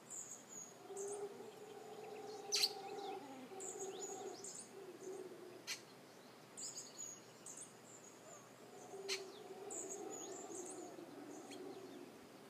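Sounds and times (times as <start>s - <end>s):
howler monkey roaring and moaning: 0.8s - 5.7s, 8.5s - 12.4s.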